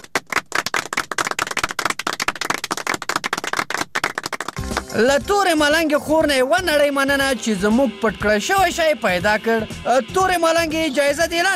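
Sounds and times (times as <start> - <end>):
audience clapping at a quiz-style show: 0.0 - 5.8
speech: 5.0 - 11.5.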